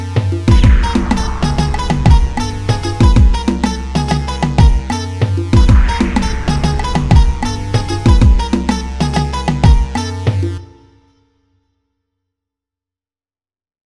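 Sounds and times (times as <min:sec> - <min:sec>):
type beat: 0:00.0 - 0:10.9.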